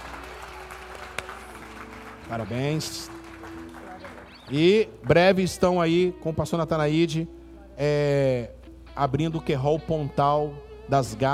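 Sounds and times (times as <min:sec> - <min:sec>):
audience applause: 0:00.0 - 0:04.8
speech: 0:02.3 - 0:03.2, 0:04.0 - 0:11.3.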